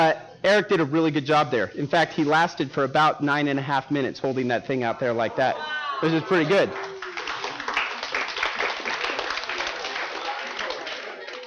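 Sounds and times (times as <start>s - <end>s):
speech: 0.0s - 6.9s
audience clapping: 6.3s - 11.4s.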